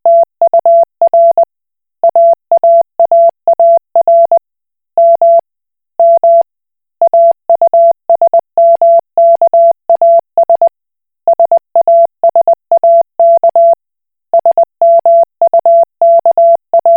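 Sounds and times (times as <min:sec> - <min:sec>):
Koch Morse code beeps: 0:00.1 - 0:01.5, 0:02.1 - 0:04.4, 0:05.0 - 0:05.4, 0:06.0 - 0:06.4, 0:07.0 - 0:10.7, 0:11.3 - 0:13.8, 0:14.4 - 0:16.9.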